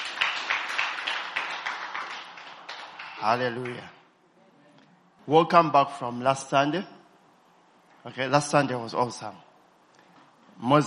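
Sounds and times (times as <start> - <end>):
group hand clapping: 0.0 - 4.0
speech: 3.2 - 4.0, 5.3 - 7.0, 8.0 - 9.5, 10.6 - 10.8.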